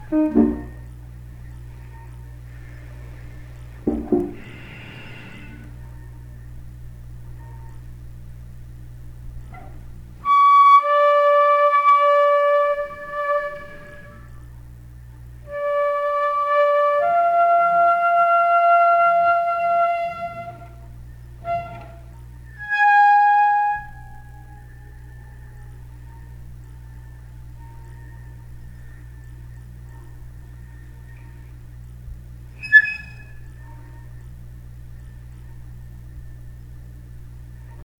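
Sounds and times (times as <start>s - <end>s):
tuba playing: 0.0s - 0.9s, 10.2s - 14.3s, 15.5s - 24.7s.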